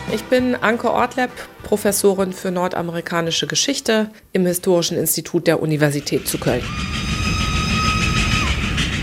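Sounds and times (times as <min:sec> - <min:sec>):
speech: 0:00.1 - 0:07.1
steam locomotive whistle: 0:06.2 - 0:09.0.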